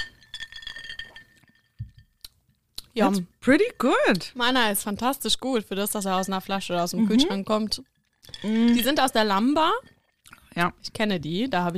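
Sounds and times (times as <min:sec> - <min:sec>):
glasses clinking in a toast: 0:00.0 - 0:02.2, 0:07.0 - 0:10.1
speech: 0:03.0 - 0:09.9, 0:10.6 - 0:11.7.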